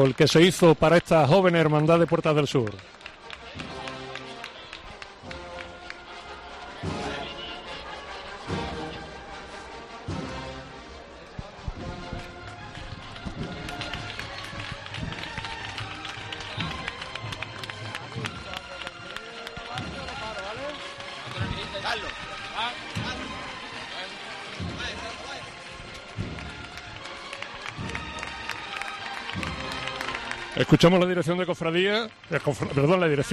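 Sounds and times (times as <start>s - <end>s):
speech: 0.0s - 3.0s, 30.8s - 33.3s
crowd applause at street procession: 0.0s - 9.1s, 11.1s - 33.3s.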